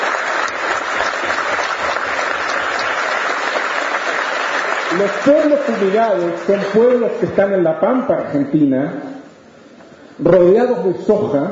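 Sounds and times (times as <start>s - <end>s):
audience applause: 0.0s - 7.2s
speech: 5.0s - 9.1s, 10.2s - 11.5s.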